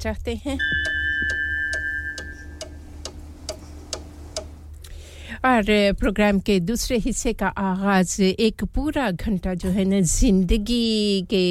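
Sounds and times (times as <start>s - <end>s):
speech: 0.0s - 1.0s, 5.4s - 11.4s
constant low hum: 0.2s - 4.9s
faint steady tone: 0.6s - 3.1s
studio clock ticking: 0.6s - 4.6s.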